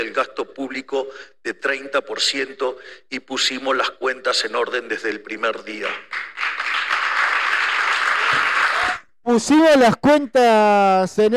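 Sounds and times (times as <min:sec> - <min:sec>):
speech: 0:00.0 - 0:06.3, 0:09.3 - 0:11.3
audience applause for Javier Milei's speech at a live event: 0:06.1 - 0:09.0.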